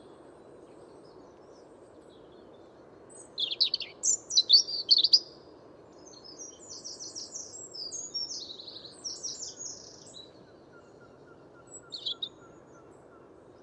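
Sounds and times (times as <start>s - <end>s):
European robin singing: 3.1s - 5.4s, 6.0s - 13.0s.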